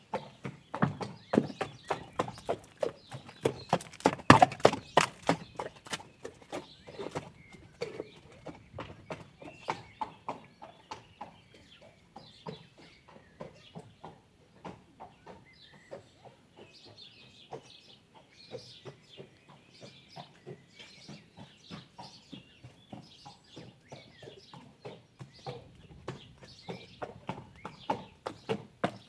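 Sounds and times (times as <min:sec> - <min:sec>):
horse riding soundscape: 0:00.0 - 0:29.0.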